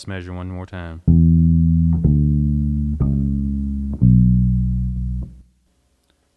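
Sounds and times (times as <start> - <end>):
guitar walking up the neck slowly: 1.1 - 5.4.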